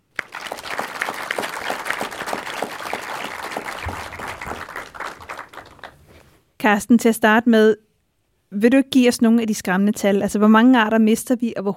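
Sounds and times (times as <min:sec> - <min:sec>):
audience applause welcoming a guest on stage: 0:00.0 - 0:06.1
speech: 0:06.6 - 0:07.8, 0:08.5 - 0:11.7.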